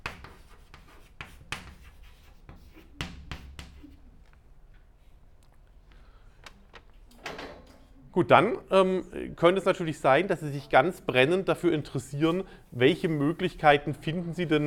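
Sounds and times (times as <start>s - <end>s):
lecturer writing a note on the board during a physics lecture: 0.0s - 4.2s
speech: 8.2s - 14.6s.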